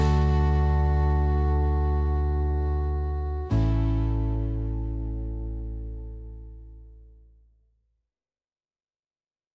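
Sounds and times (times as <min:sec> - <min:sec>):
lullaby: 0:00.0 - 0:06.4.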